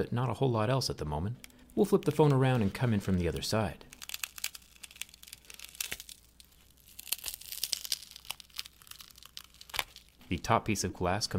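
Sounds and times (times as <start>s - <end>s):
speech: 0.0s - 3.9s, 10.3s - 11.3s
black adhesive tape being peeled off: 1.4s - 10.2s.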